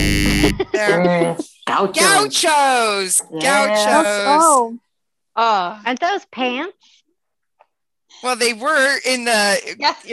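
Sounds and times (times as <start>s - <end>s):
game show buzzer: 0.0s - 0.9s
laughter: 0.2s - 4.6s, 8.3s - 10.1s
speech: 0.4s - 4.8s, 5.4s - 6.9s, 8.2s - 10.1s.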